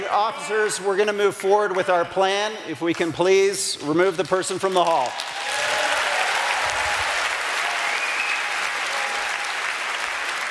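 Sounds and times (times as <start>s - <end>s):
speech: 0.2s - 5.7s
audience applause in a hall: 5.0s - 10.4s.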